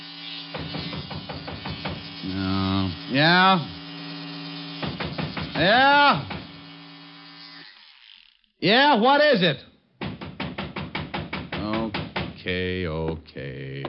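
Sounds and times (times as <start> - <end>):
electric razor buzzing as a radio drama shaving sound effect: 0.0 - 8.6
speech: 3.1 - 3.8, 5.6 - 6.3, 8.6 - 9.7, 12.4 - 13.8.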